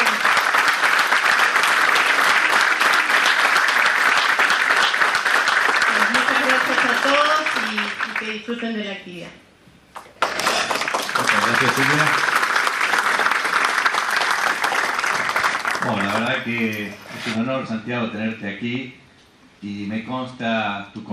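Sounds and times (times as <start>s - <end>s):
audience applause: 0.0s - 8.4s, 10.0s - 17.0s
speech: 8.5s - 9.5s, 11.6s - 12.3s, 15.9s - 19.0s, 19.6s - 21.1s.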